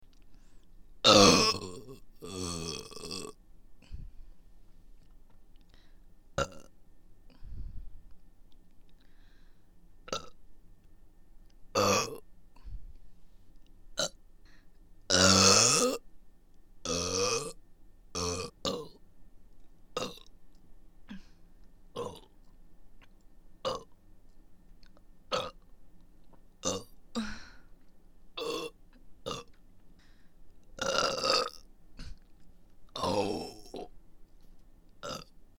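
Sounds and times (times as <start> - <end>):
burping: 1.0 - 4.0, 6.4 - 6.7, 10.1 - 10.4, 11.8 - 12.2, 14.0 - 14.2, 15.1 - 16.0, 16.8 - 19.0, 20.0 - 20.3, 22.0 - 22.3, 23.6 - 24.0, 25.3 - 25.6, 26.6 - 27.4, 28.4 - 29.6, 30.8 - 32.2, 33.0 - 33.9, 35.0 - 35.3.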